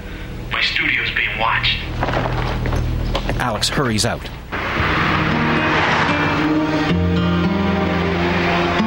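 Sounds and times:
speech: 0.6s - 2.4s, 3.3s - 4.9s
traffic speeding along a wet expressway: 4.5s - 8.8s.

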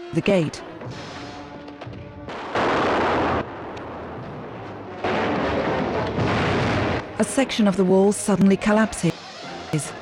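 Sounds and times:
speech: 0.1s - 1.0s, 7.2s - 9.1s, 9.7s - 9.9s
cannon fire in a battle at a fort gate: 0.8s - 7.2s
constant roar of battle noise: 5.0s - 9.9s.

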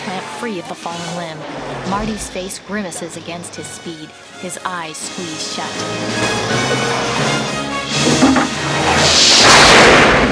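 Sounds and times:
speech: 0.1s - 7.6s
lightning strike on clock tower: 8.4s - 10.3s.

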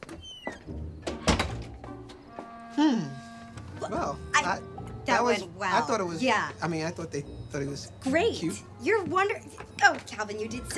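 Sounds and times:
front door shutting: 0.0s - 5.3s
speech: 2.8s - 3.2s, 3.9s - 10.7s.

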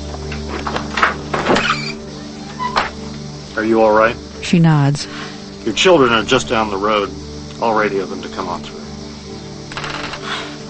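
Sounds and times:
door being opened: 0.5s - 3.0s
squeak: 1.5s - 2.9s
speech: 3.6s - 8.8s.

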